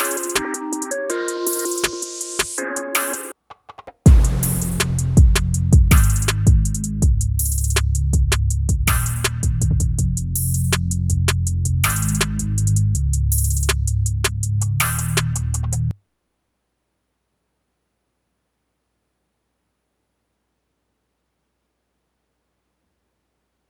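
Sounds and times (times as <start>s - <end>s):
instrumental music: 0.0s - 15.9s.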